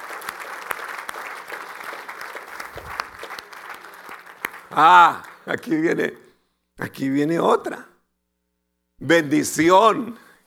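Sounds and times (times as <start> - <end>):
audience applause: 0.0 - 6.0
speech: 4.8 - 6.2, 6.8 - 7.9, 9.0 - 10.4.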